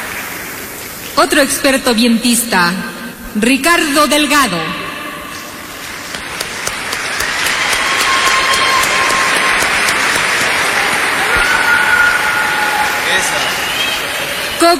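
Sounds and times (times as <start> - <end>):
speech: 1.2 - 4.8
audience applause: 5.7 - 14.7.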